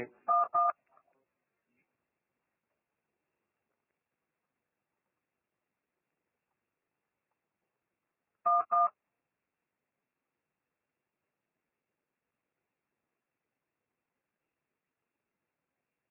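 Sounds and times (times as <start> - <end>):
telephone keypad tones dialing numbers: 8.5 - 8.9.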